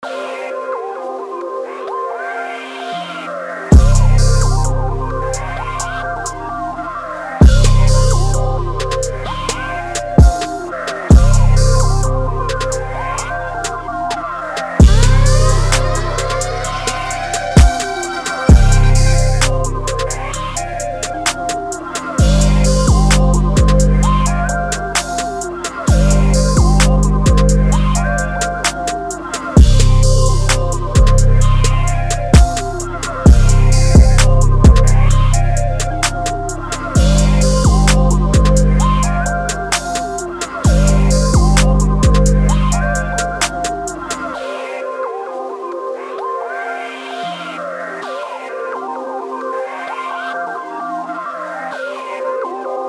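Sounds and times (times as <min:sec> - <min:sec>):
130 BPM trap beat: 0:03.7 - 0:44.7.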